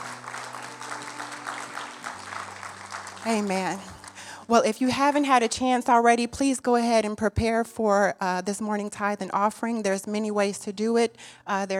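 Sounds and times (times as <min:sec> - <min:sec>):
applause for a speaker: 0:00.0 - 0:04.4
speech: 0:03.2 - 0:11.7.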